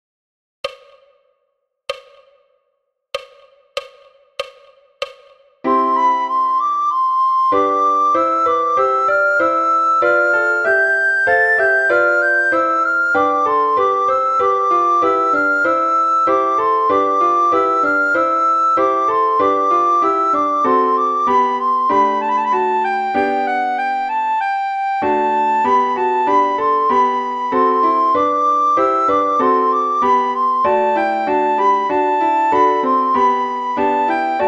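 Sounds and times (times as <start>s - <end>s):
soprano singing slowly: 5.6s - 34.4s.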